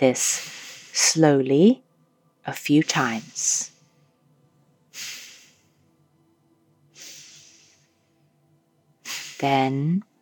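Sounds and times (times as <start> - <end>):
speech: 0.0 - 1.8, 2.4 - 3.7, 9.4 - 10.1
sharp exhalations through the nose in a belly-pumping breathing exercise: 0.4 - 1.0, 4.9 - 5.8, 6.9 - 7.9, 9.0 - 9.4.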